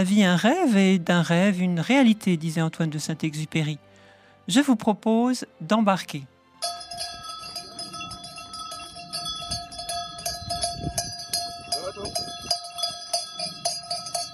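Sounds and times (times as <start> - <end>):
speech: 0.0 - 3.9, 4.5 - 6.8
sheep bells jingling on a flock of ewes walking through town streets: 6.6 - 14.3.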